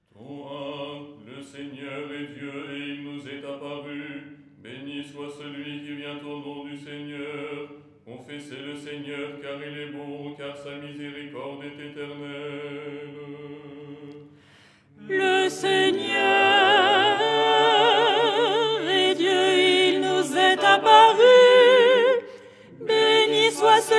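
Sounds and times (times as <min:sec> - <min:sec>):
soprano singing: 0:15.0 - 0:23.9.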